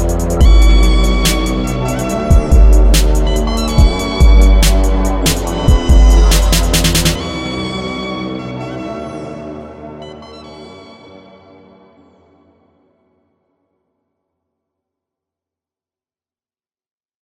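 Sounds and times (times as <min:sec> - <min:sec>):
instrumental music: 0:00.0 - 0:12.6.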